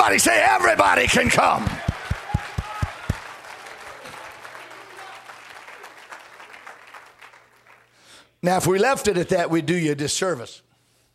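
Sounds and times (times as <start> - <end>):
speech: 0.0 - 1.8, 8.4 - 10.6
audience clapping hands: 0.7 - 8.2.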